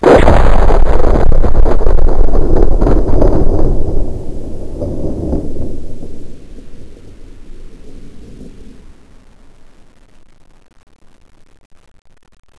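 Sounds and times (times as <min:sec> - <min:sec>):
explosion: 0:00.0 - 0:09.6.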